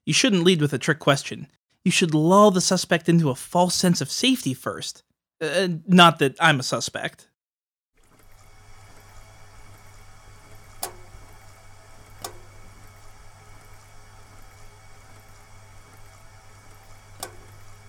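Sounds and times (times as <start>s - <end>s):
speech: 0.1s - 7.3s
loud radiator hissing and ticking: 8.0s - 17.8s.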